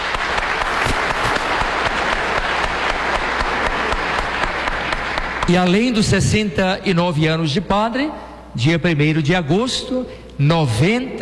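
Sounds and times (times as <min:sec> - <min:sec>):
applause: 0:00.0 - 0:06.4
speech: 0:05.5 - 0:11.1.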